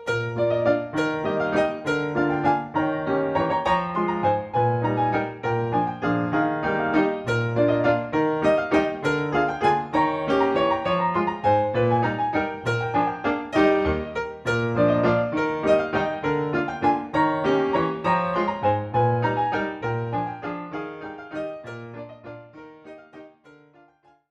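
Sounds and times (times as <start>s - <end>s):
waltz for ballet battement glisse: 0.2s - 21.9s.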